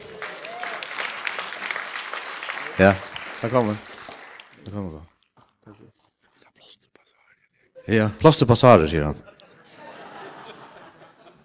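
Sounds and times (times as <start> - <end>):
audience clapping to welcome a man to the front: 0.0 - 5.6
speech: 2.8 - 3.9, 4.6 - 5.1, 7.9 - 9.3
laughter: 9.2 - 11.4.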